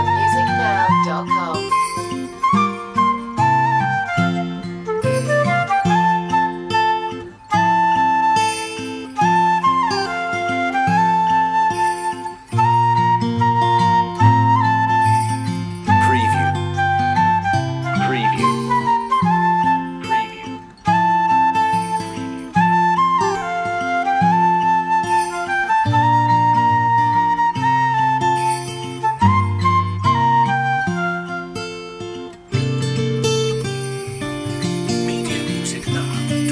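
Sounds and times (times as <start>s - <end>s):
guitar playing a Christmas song: 0.0s - 36.5s.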